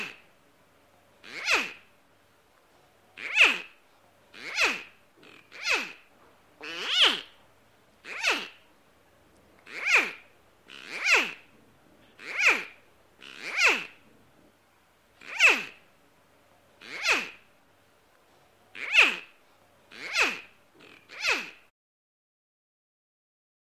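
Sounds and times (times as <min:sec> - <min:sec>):
crocodile sound: 0:01.2 - 0:01.9, 0:03.2 - 0:07.4, 0:08.0 - 0:08.6, 0:09.6 - 0:11.5, 0:12.2 - 0:14.0, 0:15.2 - 0:15.8, 0:16.8 - 0:17.5, 0:18.7 - 0:21.7.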